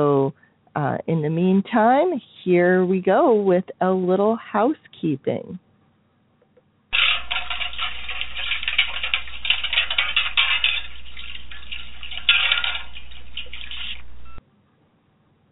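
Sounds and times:
speech: 0:01.1 - 0:05.6
metal plates clattering and scraping in a metal wash tub on a stove: 0:06.9 - 0:14.4.

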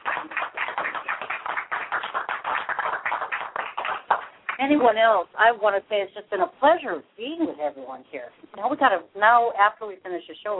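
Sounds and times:
round of applause: 0:00.0 - 0:04.6
speech: 0:04.6 - 0:10.5.

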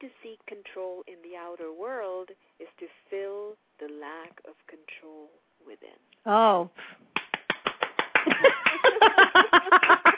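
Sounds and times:
speech: 0:00.0 - 0:07.2, 0:08.3 - 0:10.1
applause: 0:07.2 - 0:09.0, 0:09.8 - 0:10.1
laughter: 0:08.2 - 0:10.1.

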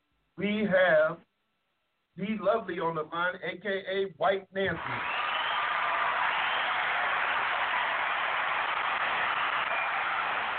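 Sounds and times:
speech: 0:00.4 - 0:01.2, 0:02.2 - 0:05.2
crowd cheering and roaring: 0:04.7 - 0:10.5.

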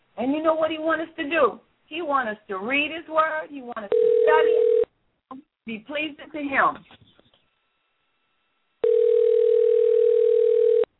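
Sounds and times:
speech: 0:00.2 - 0:07.0
phone ringing: 0:03.9 - 0:04.9, 0:08.8 - 0:10.9.

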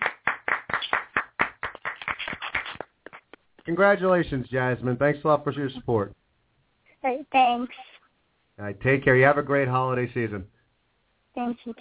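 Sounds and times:
audience applause for the show's Fan of the Year: 0:00.0 - 0:03.4
speech: 0:03.7 - 0:06.2, 0:07.0 - 0:07.9, 0:08.6 - 0:10.5, 0:11.4 - 0:11.7.

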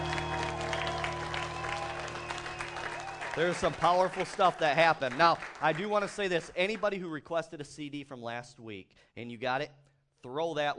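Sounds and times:
audience clapping hands: 0:00.0 - 0:07.0
speech: 0:03.4 - 0:10.7.

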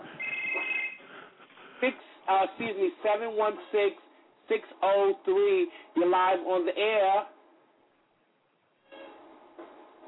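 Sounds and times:
telephone ringing with an incoming call: 0:00.2 - 0:01.0
speech: 0:01.8 - 0:07.3.

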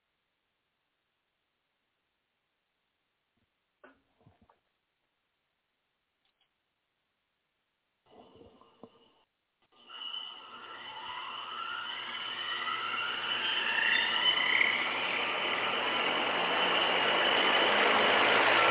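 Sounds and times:
helicopter rotor blades whirring in vacuum tank: 0:09.8 - 0:18.6.

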